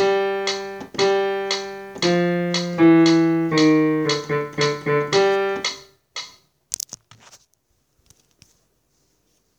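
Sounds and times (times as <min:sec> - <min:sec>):
bass playing a ballad: 0:00.0 - 0:05.8.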